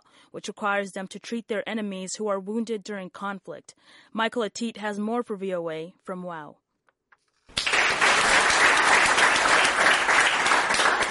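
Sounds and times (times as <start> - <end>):
speech: 0.3 - 6.6
hearty round of applause: 7.6 - 11.0.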